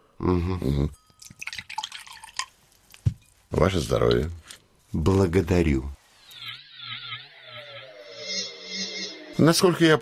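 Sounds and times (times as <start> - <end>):
speech: 0.2 - 1.4, 3.5 - 6.0, 9.4 - 9.9
drink pouring into a glass: 1.2 - 2.6.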